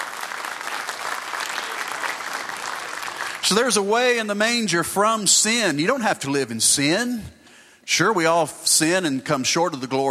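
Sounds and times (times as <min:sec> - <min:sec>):
audience hand clapping in praise: 0:00.0 - 0:03.9
speech: 0:03.5 - 0:10.1.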